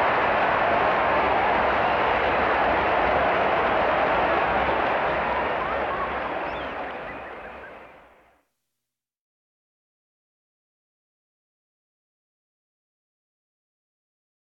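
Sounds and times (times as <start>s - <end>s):
crowd at a bullfight: 0.0s - 8.4s.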